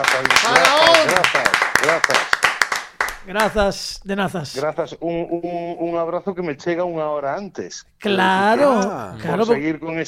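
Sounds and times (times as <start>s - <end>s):
scattered handclaps welcoming a talk show guest: 0.0s - 3.6s
speech: 3.2s - 10.0s.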